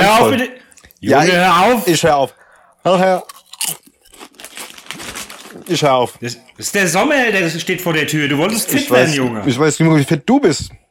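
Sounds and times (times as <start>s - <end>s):
speech: 0.2s - 3.8s, 5.7s - 10.8s
crunching potato chips: 3.2s - 5.9s.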